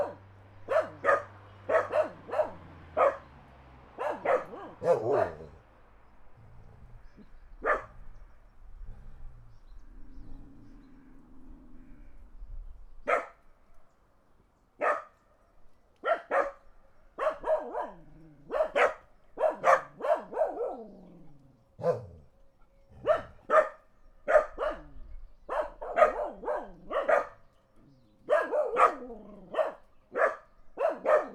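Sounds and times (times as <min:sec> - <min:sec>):
dog barking: 0:00.0 - 0:05.6, 0:07.6 - 0:08.0, 0:13.1 - 0:13.4, 0:14.8 - 0:15.2, 0:16.0 - 0:16.6, 0:17.2 - 0:21.0, 0:21.8 - 0:22.3, 0:23.0 - 0:27.4, 0:28.2 - 0:31.3.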